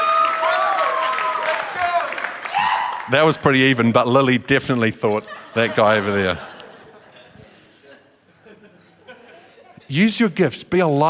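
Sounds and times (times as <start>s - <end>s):
audience clapping and cheering: 0.0s - 3.8s
speech: 3.1s - 6.5s, 9.9s - 11.0s
laughter: 5.0s - 9.9s.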